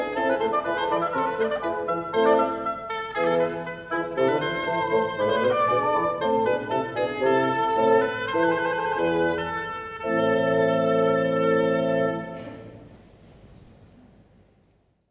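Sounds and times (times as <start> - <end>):
organ basso continuo: 0.0 - 12.4
oboe sonata in A minor: 0.0 - 12.7.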